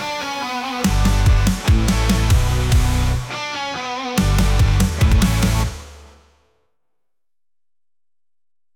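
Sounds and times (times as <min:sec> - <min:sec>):
metal ballad: 0:00.0 - 0:06.2.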